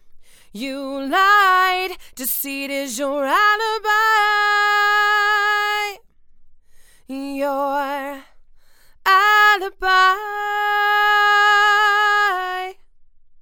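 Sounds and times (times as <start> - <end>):
female vocals: 0.4 - 6.0, 7.1 - 8.4, 9.0 - 12.8.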